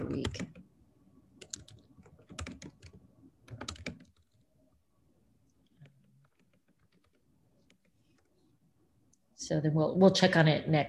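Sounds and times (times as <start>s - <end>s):
computer keyboard typing while writing a note: 0.0s - 0.6s, 1.4s - 4.4s, 5.7s - 8.3s
speech: 0.0s - 0.6s, 9.4s - 10.8s.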